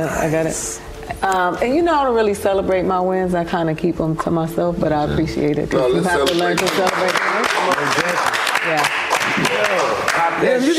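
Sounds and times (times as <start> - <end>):
speech: 0.0 - 9.0, 10.4 - 10.7
people clapping: 6.1 - 10.7.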